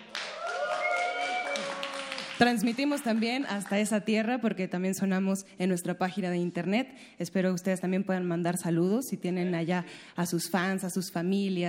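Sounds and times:
cheering voices: 0.0s - 2.4s
audience applause: 0.0s - 3.8s
speech: 2.4s - 11.6s.

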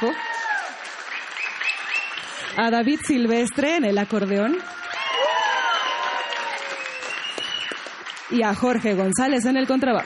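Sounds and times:
speech: 0.0s - 0.4s, 2.6s - 4.8s, 8.3s - 10.0s
concert audience applause: 0.0s - 8.9s.

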